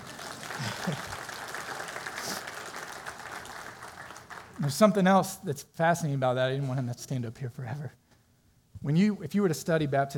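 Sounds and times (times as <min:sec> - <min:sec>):
crowd applauding: 0:00.0 - 0:04.8
speech: 0:04.6 - 0:08.0, 0:08.8 - 0:10.1.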